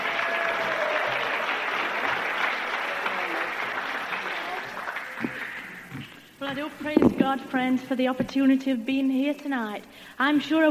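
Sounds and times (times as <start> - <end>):
audience applause: 0.0 - 6.2
speech: 6.5 - 10.6.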